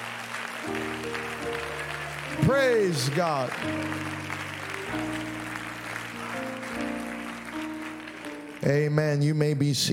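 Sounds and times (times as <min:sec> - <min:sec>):
audience clapping: 0:00.0 - 0:09.4
sustained keyboard chords: 0:00.0 - 0:09.4
speech: 0:02.4 - 0:04.2, 0:04.9 - 0:05.4, 0:08.6 - 0:09.9.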